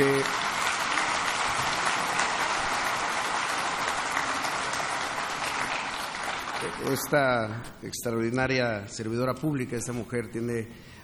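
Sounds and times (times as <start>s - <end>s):
audience applause at a public event in Mexico: 0.0s - 7.3s
speech: 6.8s - 10.9s.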